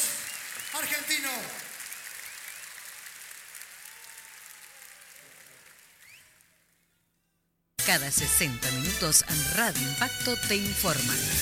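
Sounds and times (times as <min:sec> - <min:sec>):
audience applause: 0:00.0 - 0:06.8
speech: 0:00.8 - 0:01.7, 0:07.9 - 0:11.4.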